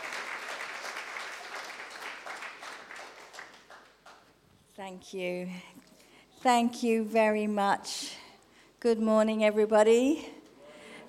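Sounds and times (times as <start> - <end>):
crowd applause welcoming a speaker in a church service: 0.0 - 4.3
speech: 4.8 - 5.8, 6.4 - 8.2, 8.8 - 10.4.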